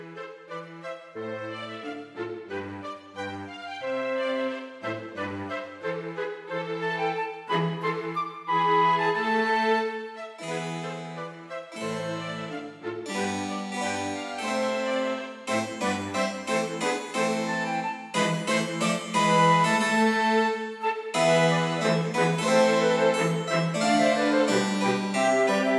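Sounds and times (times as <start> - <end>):
cello: 0.0 - 25.7
flute: 0.0 - 25.7
violin: 0.0 - 25.7
harpsichord: 10.4 - 25.7.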